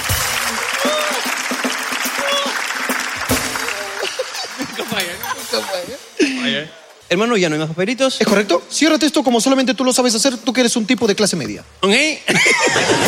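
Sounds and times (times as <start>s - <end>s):
loud applause: 0.0s - 6.0s
laughter: 3.3s - 6.5s, 12.3s - 13.0s
speech: 5.6s - 13.0s.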